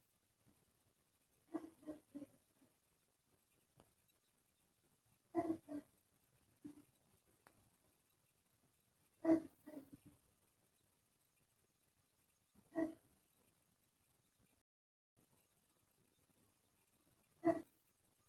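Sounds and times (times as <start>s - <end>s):
faint dog barking: 1.5s - 2.4s, 5.3s - 6.0s, 9.2s - 10.0s, 12.7s - 13.0s, 17.3s - 17.8s.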